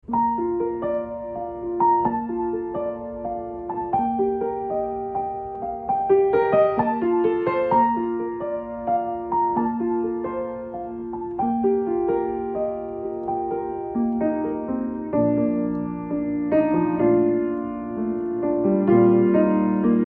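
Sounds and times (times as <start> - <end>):
piano: 0.0 - 20.0.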